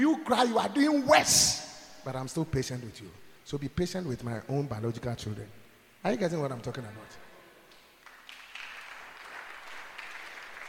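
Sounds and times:
speech: 0:00.0 - 0:07.3
audience clapping: 0:07.7 - 0:10.6.

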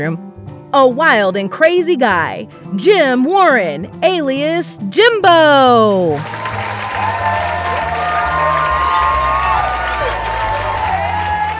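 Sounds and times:
speech: 0:00.0 - 0:06.4
crowd applause and cheering: 0:06.1 - 0:11.5.

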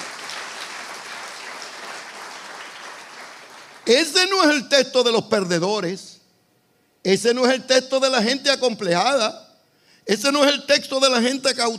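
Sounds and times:
audience applause: 0:00.0 - 0:03.9
speech: 0:03.9 - 0:06.2, 0:07.0 - 0:09.4, 0:10.0 - 0:11.7.

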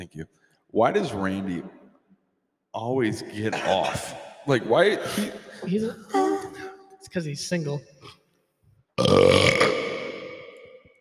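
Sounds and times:
speech: 0:00.0 - 0:01.8, 0:02.8 - 0:06.2, 0:07.1 - 0:08.2, 0:09.0 - 0:09.7
loud long burp echoing in a bathroom: 0:03.5 - 0:04.2, 0:09.0 - 0:10.9.

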